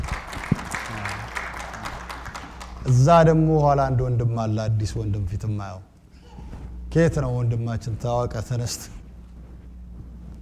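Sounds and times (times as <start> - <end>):
audience applauding to welcome guests at a gathering: 0.0 - 3.8
low hum: 0.0 - 10.3
speech: 2.8 - 5.9, 6.9 - 9.0.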